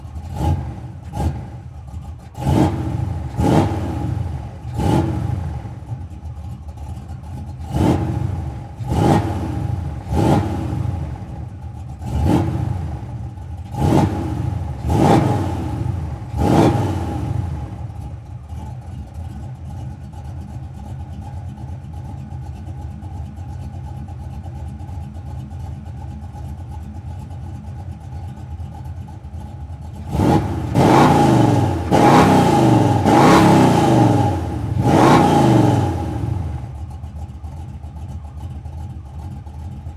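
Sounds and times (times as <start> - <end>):
muscle car engine starting and revving slowly: 0.0 - 6.5, 7.6 - 18.3, 29.8 - 37.4.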